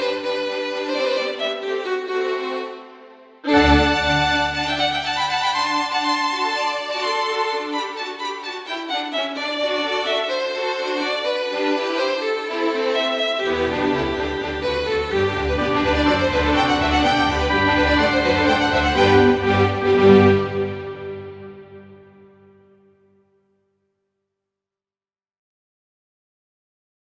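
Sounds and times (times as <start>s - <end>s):
classical violin concerto: 0.0s - 22.4s.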